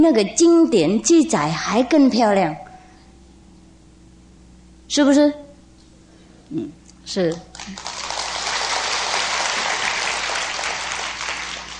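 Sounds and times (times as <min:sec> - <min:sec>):
speech: 0:00.0 - 0:02.6, 0:04.9 - 0:05.4, 0:06.5 - 0:07.9
audience clapping: 0:07.3 - 0:11.7.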